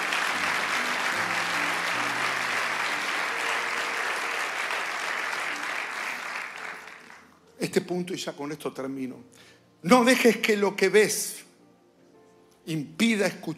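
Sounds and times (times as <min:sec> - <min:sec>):
audience applause: 0:00.0 - 0:07.3
speech: 0:07.6 - 0:11.4, 0:12.7 - 0:13.5.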